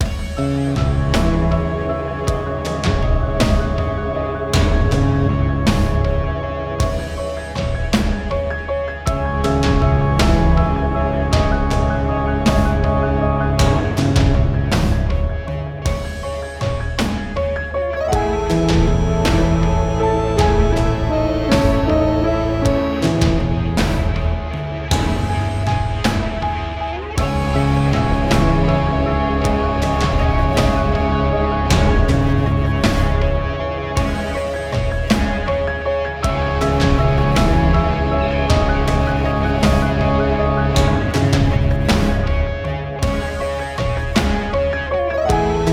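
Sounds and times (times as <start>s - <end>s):
eerie cemetery loop: 0.0s - 45.7s.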